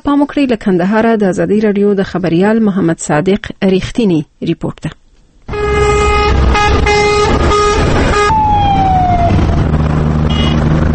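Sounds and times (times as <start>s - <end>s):
speech: 0.0s - 5.0s
foreign military convoy vehicle horn blasts on Kandahar city streets: 5.5s - 8.4s, 10.3s - 10.7s
descending siren-like tone: 5.5s - 10.9s
heavy engine rumble of foreign military convoy vehicles in Kandahar: 5.5s - 10.9s.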